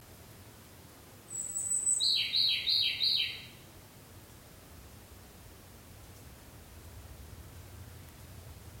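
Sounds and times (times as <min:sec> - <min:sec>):
faint background hiss: 0:00.0 - 0:08.7
Ryukyu robin singing: 0:01.3 - 0:03.6.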